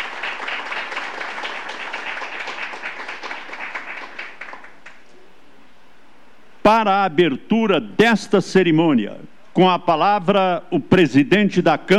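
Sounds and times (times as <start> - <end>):
crowd applauding: 0.0 - 5.0
speech: 6.6 - 11.9.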